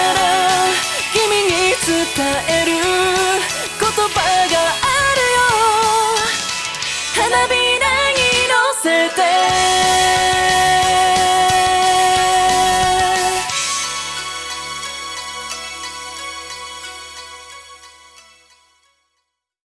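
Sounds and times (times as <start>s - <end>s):
a cappella singing: 0.0s - 6.5s, 7.1s - 13.6s.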